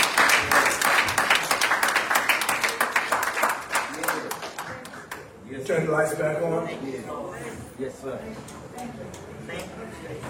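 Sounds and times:
audience hand clapping: 0:00.0 - 0:05.4
speech: 0:05.7 - 0:10.2.

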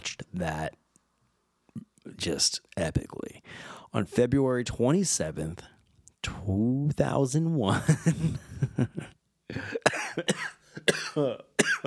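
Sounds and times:
speech: 0:00.4 - 0:00.8, 0:02.2 - 0:11.8
person laughing in voiced chuckling bursts: 0:07.7 - 0:11.8
choking cough after a laugh: 0:09.0 - 0:11.8.

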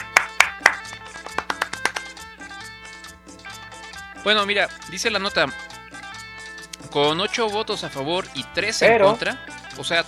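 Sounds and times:
hand clapping: 0:00.0 - 0:04.1, 0:05.6 - 0:06.9
speech: 0:04.2 - 0:05.6, 0:06.9 - 0:10.0.

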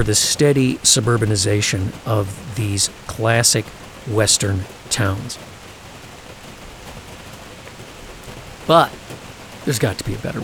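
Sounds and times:
speech: 0:00.0 - 0:05.6, 0:08.7 - 0:09.0, 0:09.6 - 0:10.4
rainstorm: 0:00.0 - 0:10.4.

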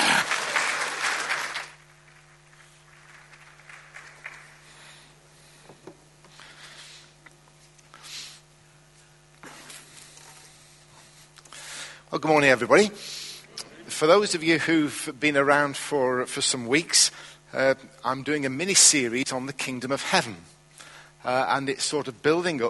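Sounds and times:
audience applause: 0:00.0 - 0:05.1
speech: 0:12.2 - 0:13.2, 0:14.0 - 0:20.6, 0:21.2 - 0:22.6.

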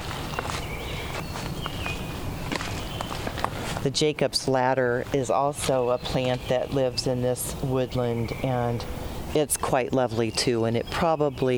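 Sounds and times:
footsteps on the forest floor in a woodland understory: 0:00.0 - 0:03.9
speech: 0:03.8 - 0:11.5.

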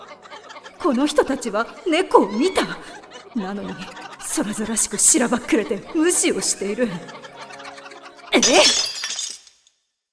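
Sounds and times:
laughter: 0:00.0 - 0:08.9
speech: 0:00.8 - 0:07.2, 0:08.4 - 0:08.9
coffee cup dropped and shattering: 0:08.4 - 0:09.7.

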